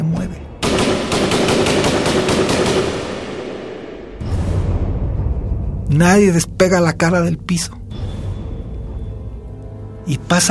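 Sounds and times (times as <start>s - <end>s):
machine-gun fire: 0.6s - 4.2s
heavy blast of noise: 0.6s - 5.6s
speech: 5.9s - 8.0s, 10.1s - 10.4s.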